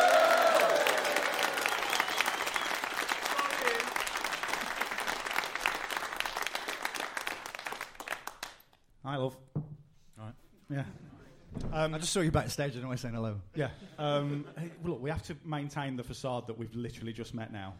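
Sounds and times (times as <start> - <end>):
audience whooping and cheering: 0.0 - 4.2
audience clapping: 0.0 - 8.8
speech: 11.8 - 17.7.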